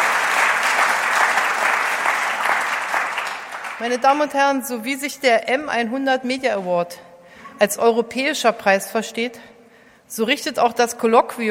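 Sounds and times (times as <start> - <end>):
audience applauding at a media award ceremony: 0.0 - 4.1
speech: 3.8 - 11.4.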